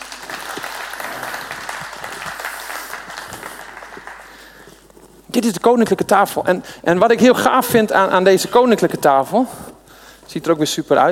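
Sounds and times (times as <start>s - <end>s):
audience applause: 0.0s - 4.8s
speech: 5.4s - 9.6s, 10.3s - 11.1s.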